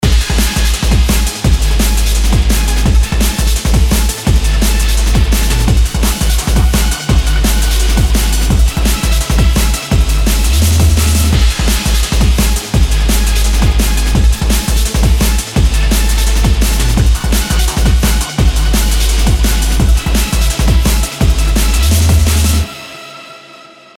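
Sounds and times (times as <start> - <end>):
EBM and bass music: 0.0 - 23.5.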